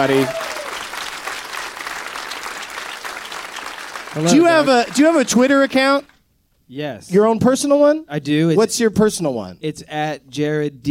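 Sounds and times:
speech: 0.0 - 0.5, 4.2 - 6.1, 6.7 - 10.8
comedy club audience applause: 0.0 - 6.2.

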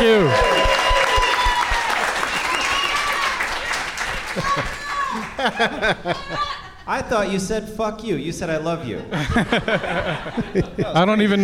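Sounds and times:
audience applause greeting a first-time guest on a comedy show: 0.0 - 5.9
laughter: 4.0 - 7.2, 8.8 - 11.4
speech: 5.4 - 11.4.

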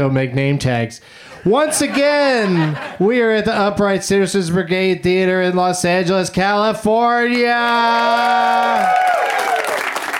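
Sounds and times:
speech: 0.0 - 9.3
laughter: 1.4 - 3.6
audience applause at the Upright Citizens Brigade Theater in Los Angeles: 7.7 - 10.1.

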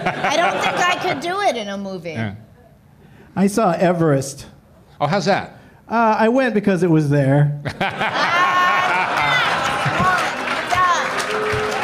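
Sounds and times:
laughter: 0.0 - 1.3, 7.6 - 11.8
speech: 0.1 - 2.5, 3.4 - 8.4
audience booing: 8.1 - 11.8.

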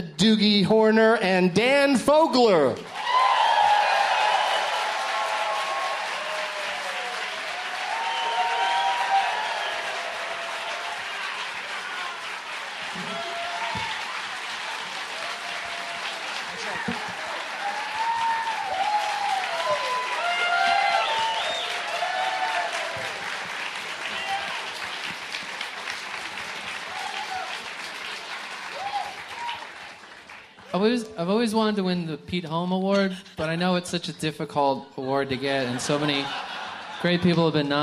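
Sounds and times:
speech: 0.0 - 2.9, 31.2 - 37.8
audience applause at a live comedy show: 2.5 - 31.0
laughter: 16.3 - 17.6, 35.1 - 37.8.

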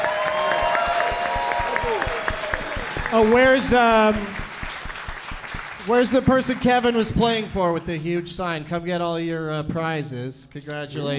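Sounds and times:
audience applause: 0.0 - 7.6
speech: 1.9 - 2.1, 3.1 - 4.4, 5.8 - 11.1.

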